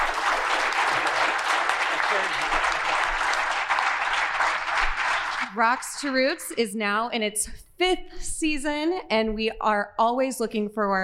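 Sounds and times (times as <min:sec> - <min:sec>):
audience applause: 0:00.0 - 0:05.9
speech: 0:05.6 - 0:11.0.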